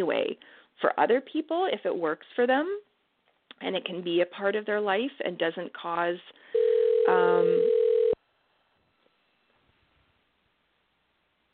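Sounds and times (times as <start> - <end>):
speech: 0.0 - 2.9, 3.6 - 7.8
phone ringing: 6.5 - 8.2.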